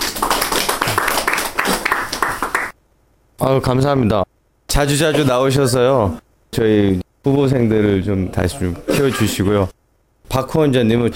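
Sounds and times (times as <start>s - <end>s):
audience applause: 0.0s - 2.8s
speech: 3.4s - 11.1s.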